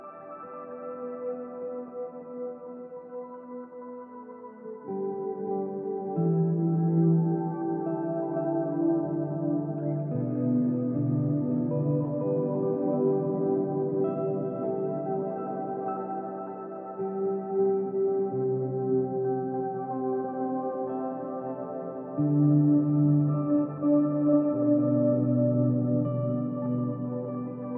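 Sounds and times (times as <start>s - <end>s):
drifting dreamy atmospheric guitar drone: 0.0s - 27.7s.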